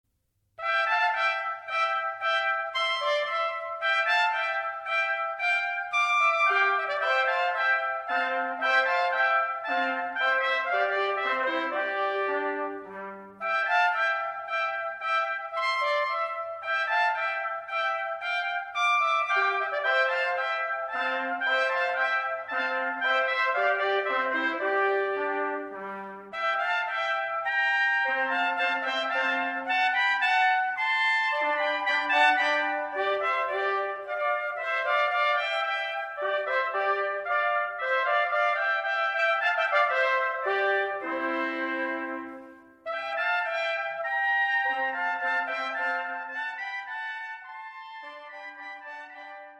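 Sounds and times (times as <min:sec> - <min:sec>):
minuet: 0:00.6 - 0:49.5.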